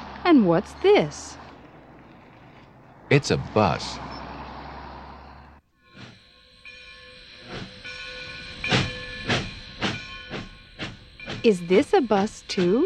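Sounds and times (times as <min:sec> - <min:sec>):
train passing: 0:00.0 - 0:12.8
speech: 0:00.2 - 0:01.4, 0:03.1 - 0:04.2, 0:11.4 - 0:12.8.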